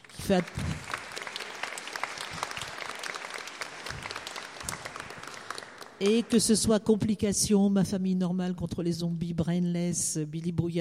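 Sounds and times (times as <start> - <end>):
audience applause: 0.0 - 6.3
speech: 0.3 - 0.7, 6.0 - 10.7.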